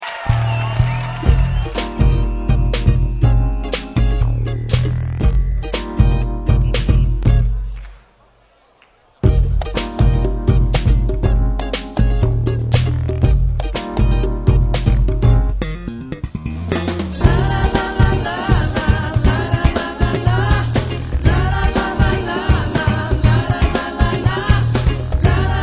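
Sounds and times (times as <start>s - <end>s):
samba music: 0.0s - 8.1s, 9.1s - 25.6s.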